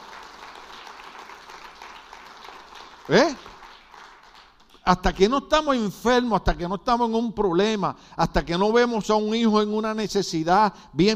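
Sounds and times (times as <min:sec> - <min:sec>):
audience applause: 0:00.0 - 0:04.7
speech: 0:03.1 - 0:03.5, 0:04.8 - 0:11.1.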